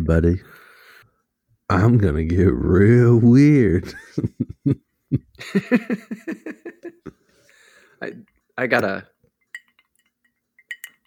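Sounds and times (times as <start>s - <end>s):
speech: 0.1s - 0.6s, 1.7s - 7.2s, 8.0s - 9.1s
laughter: 3.8s - 7.2s
glass clinking with bourbon: 9.4s - 11.0s.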